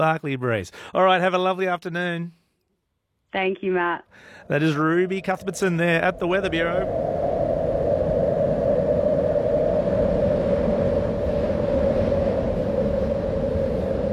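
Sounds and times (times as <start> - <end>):
speech: 0.0 - 2.4, 3.3 - 7.2
wind blowing: 4.2 - 14.1.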